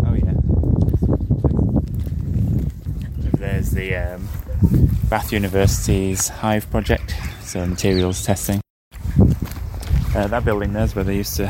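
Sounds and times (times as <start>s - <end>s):
low rumble of wind: 0.0s - 11.4s
several people's footsteps on hard ground outdoors: 0.7s - 6.6s, 8.9s - 11.4s
speech: 3.8s - 8.6s, 10.2s - 11.4s.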